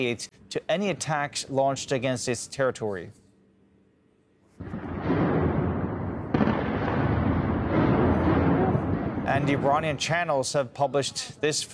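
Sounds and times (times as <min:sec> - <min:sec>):
speech: 0:00.0 - 0:03.2, 0:09.3 - 0:11.7
air defense blasts over Tehran: 0:04.6 - 0:10.2
heavy continuous rumble: 0:07.2 - 0:10.0.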